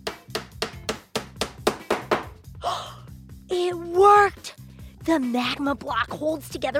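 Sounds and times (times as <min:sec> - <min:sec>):
hammer driving a nail: 0:00.0 - 0:02.4
speech: 0:03.5 - 0:06.7.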